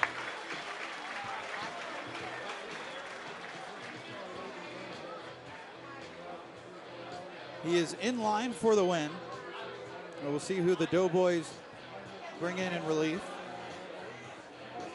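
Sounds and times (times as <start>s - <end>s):
baseball stadium crowd applauding and cheering: 0.0s - 4.7s
speech: 7.6s - 9.3s, 10.2s - 11.6s, 12.4s - 13.3s.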